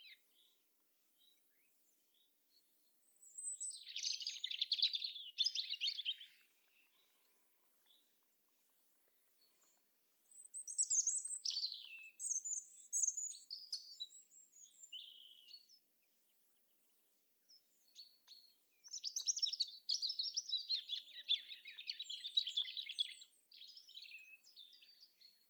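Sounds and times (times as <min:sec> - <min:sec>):
European robin singing: 0:03.0 - 0:07.2, 0:10.3 - 0:15.8, 0:17.5 - 0:25.4.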